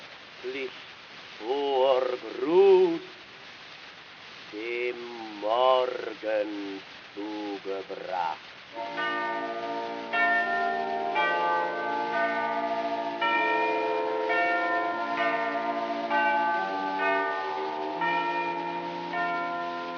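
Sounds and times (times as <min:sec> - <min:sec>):
speech: 0:00.4 - 0:03.1, 0:04.5 - 0:09.8
bells ringing: 0:08.7 - 0:19.9.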